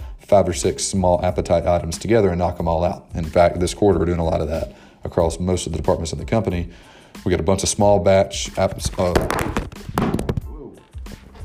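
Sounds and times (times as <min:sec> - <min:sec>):
speech: 0:00.3 - 0:10.3
phone being dropped: 0:09.2 - 0:10.5.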